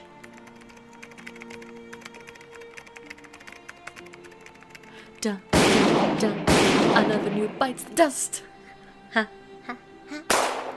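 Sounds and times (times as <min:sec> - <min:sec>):
speech: 0:05.2 - 0:08.5, 0:09.2 - 0:09.8
sniper rifle gunshot in a video game: 0:05.5 - 0:07.8, 0:10.3 - 0:10.7.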